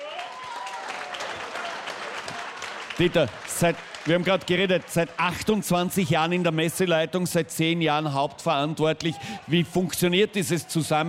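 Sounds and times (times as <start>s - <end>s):
crowd clapping for a festival organiser: 0.0s - 7.4s
speech: 3.0s - 11.0s.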